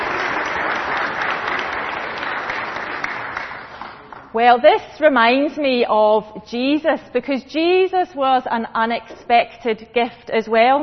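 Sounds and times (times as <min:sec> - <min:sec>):
round of applause from a group: 0:00.0 - 0:04.4
speech: 0:04.4 - 0:10.8.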